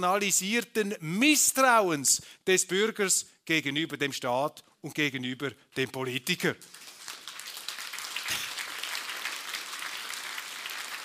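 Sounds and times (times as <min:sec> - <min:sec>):
speech: 0:00.0 - 0:06.8
crowd applause: 0:06.7 - 0:11.0.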